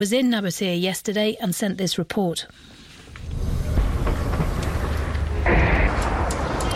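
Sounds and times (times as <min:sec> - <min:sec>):
speech: 0:00.0 - 0:02.8
distant loud explosions: 0:03.2 - 0:06.7.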